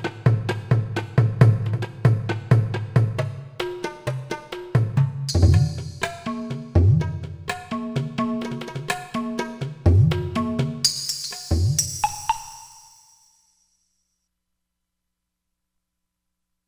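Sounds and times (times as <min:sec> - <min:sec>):
drum: 0:00.0 - 0:12.9.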